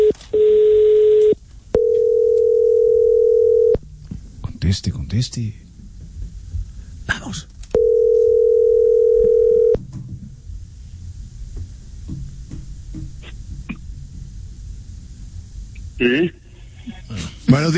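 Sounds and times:
telephone dial tone: 0.0s - 3.8s, 7.8s - 9.8s
speech: 4.7s - 5.6s, 16.0s - 16.4s, 17.6s - 17.7s.

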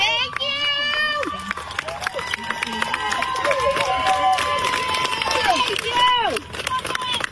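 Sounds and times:
crowd outside a courthouse cheering and shouting: 0.0s - 7.2s.

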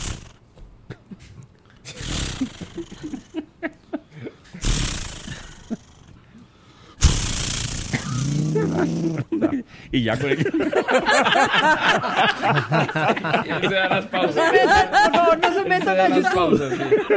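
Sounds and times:
laughter: 0.9s - 4.5s, 8.4s - 17.1s
voice imitating a chainsaw starting: 1.9s - 3.2s, 4.6s - 6.0s, 7.0s - 9.3s
speech: 8.8s - 17.1s.

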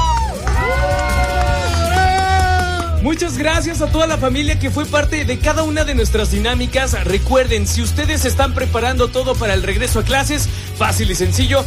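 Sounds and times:
audience applause and cheering: 0.0s - 4.2s
speech: 3.2s - 11.6s.

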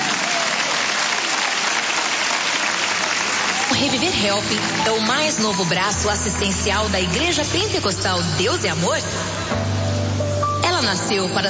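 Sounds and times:
audience clapping: 0.0s - 6.1s
speech: 3.7s - 9.7s, 10.8s - 11.4s.

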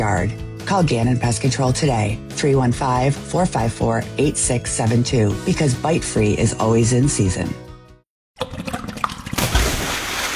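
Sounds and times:
speech: 0.0s - 7.7s
water splashing and gushing: 8.4s - 10.3s.

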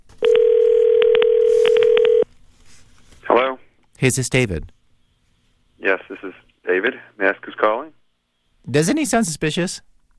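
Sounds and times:
telephone dial tone: 0.2s - 2.2s
speech: 4.0s - 4.8s, 5.8s - 7.9s, 8.6s - 9.9s.

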